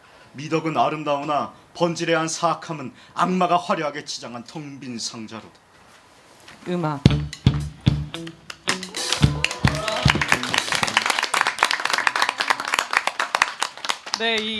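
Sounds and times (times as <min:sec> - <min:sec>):
speech: 0:00.4 - 0:05.6, 0:06.6 - 0:07.6, 0:14.2 - 0:14.5
audience applause: 0:08.9 - 0:14.5.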